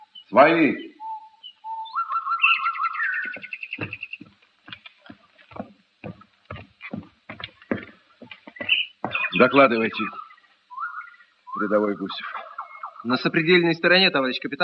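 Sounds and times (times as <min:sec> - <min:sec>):
nightingales singing: 0:00.0 - 0:14.6
speech: 0:00.3 - 0:00.9, 0:09.4 - 0:10.2, 0:11.6 - 0:12.4, 0:13.0 - 0:14.6
dull knocks and taps: 0:03.2 - 0:09.5.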